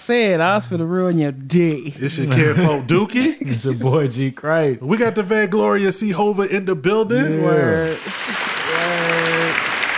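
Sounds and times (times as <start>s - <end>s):
speech: 0.1s - 8.4s
laughter: 2.1s - 3.9s, 7.1s - 9.9s
applause: 7.9s - 9.9s.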